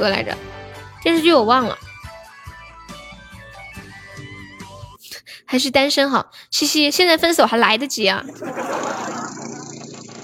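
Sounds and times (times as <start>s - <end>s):
speech: 0.0s - 1.9s, 5.5s - 8.8s
motorcycle engine running: 8.9s - 10.2s.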